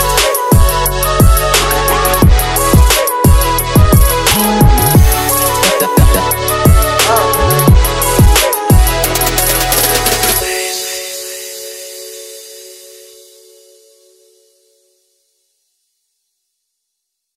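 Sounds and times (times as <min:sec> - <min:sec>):
trap future bass instrumental music: 0:00.0 - 0:11.6.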